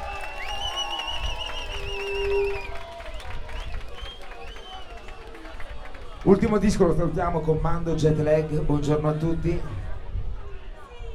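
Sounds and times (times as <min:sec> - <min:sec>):
audience applause on command: 0:00.0 - 0:06.8
speech: 0:06.2 - 0:09.8.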